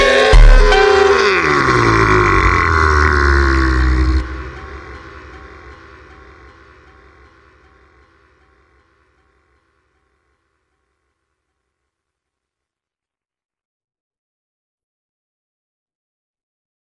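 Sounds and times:
super slowed funk music: 0.0 - 7.0.

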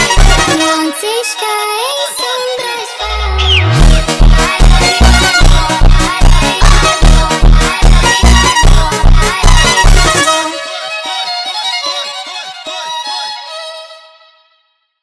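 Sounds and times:
super sped-up funk music: 0.0 - 0.8, 2.7 - 10.7.

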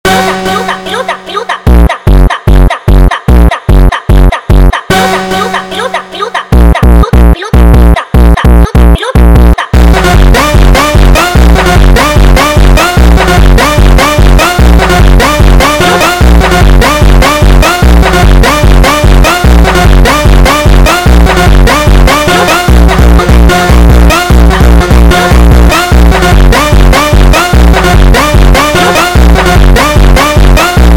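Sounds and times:
sped up funk music: 0.1 - 30.9.

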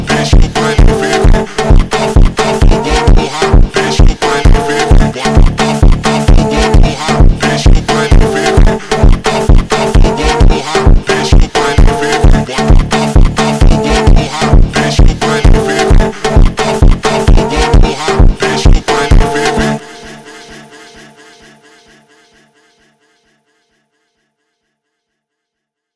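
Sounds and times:
slowed alien horror funk music: 0.0 - 20.4.

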